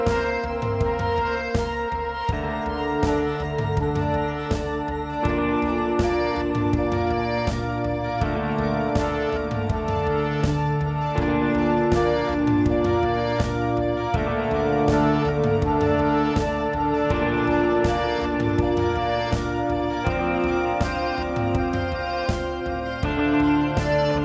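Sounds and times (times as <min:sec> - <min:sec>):
ambient guitar effect from a multi-effects pedal: 0:00.0 - 0:24.2.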